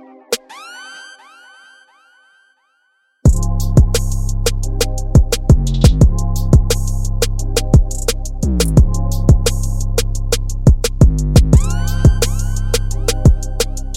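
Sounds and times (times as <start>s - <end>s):
instrumental music: 3.3s - 13.9s.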